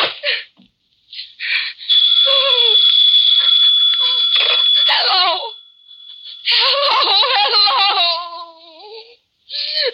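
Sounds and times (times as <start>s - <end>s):
telephone ringing: 1.9s - 7.9s.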